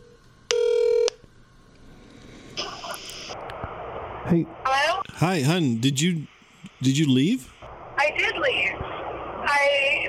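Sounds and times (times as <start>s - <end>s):
telephone dial tone: 0.5s - 1.2s
speech: 4.3s - 8.7s.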